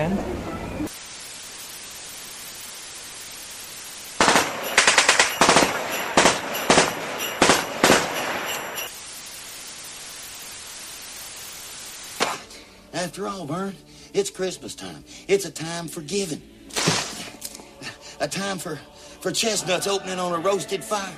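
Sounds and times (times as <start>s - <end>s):
steady hiss: 0.9s - 21.1s
rapid gunfire from a gun in a film: 4.2s - 8.9s, 12.2s - 12.5s
speech: 13.2s - 17.0s, 18.2s - 21.1s.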